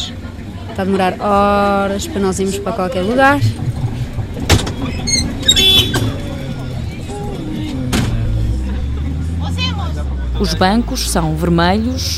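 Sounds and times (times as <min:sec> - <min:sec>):
large 15-seat Toyota minibus engine drone: 0:00.0 - 0:12.1
voices chattering: 0:00.0 - 0:12.1
speech: 0:00.8 - 0:03.8, 0:10.4 - 0:12.1
clicks and clunks inside minibus: 0:03.4 - 0:06.9, 0:07.7 - 0:08.4.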